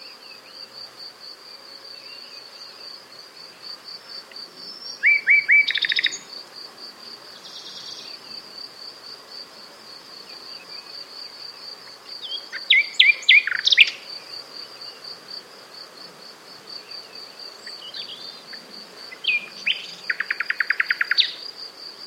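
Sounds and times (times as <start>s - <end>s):
Luscinia megarhynchos singing: 4.8s - 6.2s, 12.2s - 14.0s, 19.1s - 21.4s.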